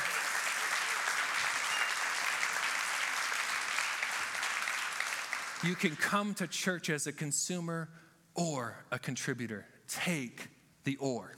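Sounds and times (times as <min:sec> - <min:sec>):
audience applauding volunteers in a large room: 0:00.0 - 0:06.2
speech: 0:05.6 - 0:11.3.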